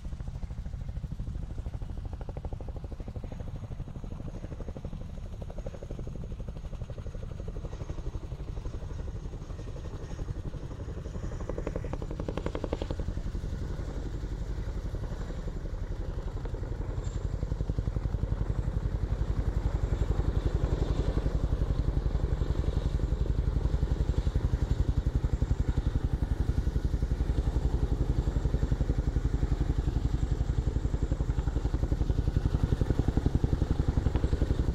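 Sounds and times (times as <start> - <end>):
Chinook helicopter hovering and passing: 0.0 - 34.7.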